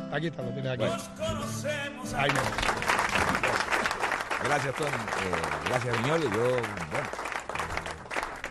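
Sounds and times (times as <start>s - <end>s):
speech: 0.1s - 3.3s, 4.4s - 7.3s
canned applause sound effect: 2.1s - 8.4s.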